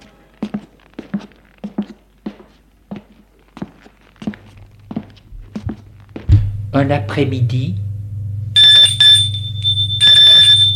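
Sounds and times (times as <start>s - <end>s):
speech: 6.8s - 7.8s
doorbell ringing: 8.6s - 10.7s.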